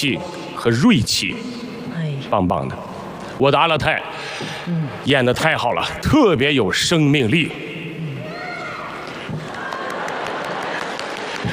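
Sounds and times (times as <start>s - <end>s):
speech: 0.0s - 1.7s, 2.3s - 7.7s
crowd cheering and shouting: 8.2s - 10.3s
crowd applauding: 9.4s - 11.5s.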